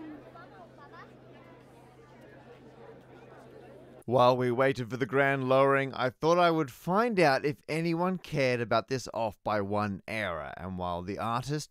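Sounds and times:
crowd chatter at a construction site: 0:00.0 - 0:04.0
speech: 0:04.1 - 0:11.6.

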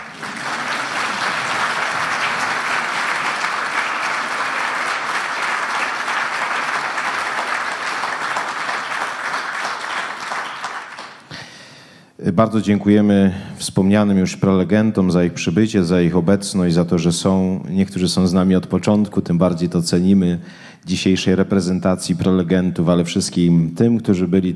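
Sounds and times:
audience applause: 0:00.0 - 0:11.3
speech: 0:12.3 - 0:24.5.

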